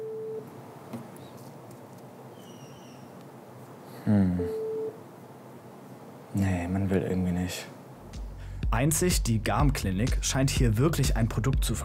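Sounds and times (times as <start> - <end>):
telephone busy signal beeps: 0.0 - 0.4, 4.4 - 5.0
speech: 4.1 - 4.6, 6.4 - 7.8, 8.7 - 11.8.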